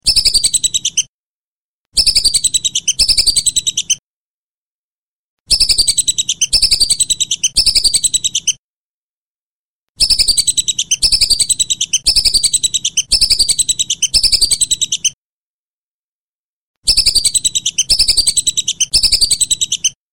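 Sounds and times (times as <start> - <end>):
whistling duck chirped whistles: 0.0 - 1.1, 2.0 - 4.0, 5.5 - 8.6, 10.0 - 15.2, 16.8 - 20.0.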